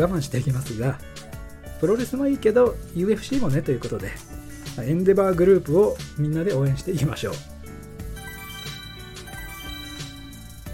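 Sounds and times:
speech: 0.0s - 7.5s
electronic email arrival notification tone: 8.2s - 10.7s.

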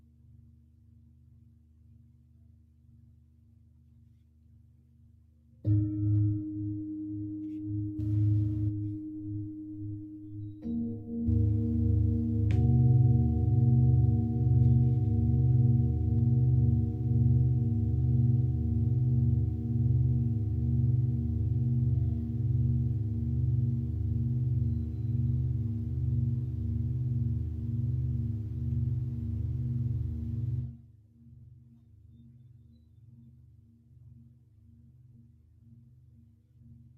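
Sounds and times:
singing bowl sound healing at dawn in Mexico: 5.6s - 30.8s.

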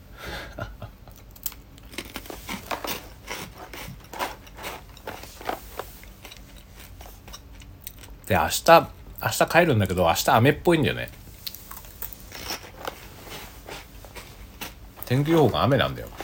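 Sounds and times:
crunching Poteron potato sticks: 1.1s - 8.3s, 11.1s - 16.2s
speech: 8.3s - 11.2s, 15.1s - 16.2s.

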